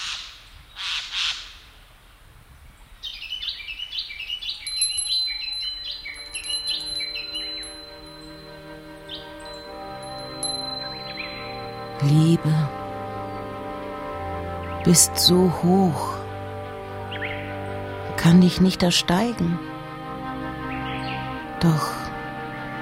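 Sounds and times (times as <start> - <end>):
birds calling and squawking: 3.0 - 18.2, 20.2 - 22.8
speech: 12.0 - 12.8, 14.8 - 16.2, 18.2 - 19.7, 21.6 - 22.0.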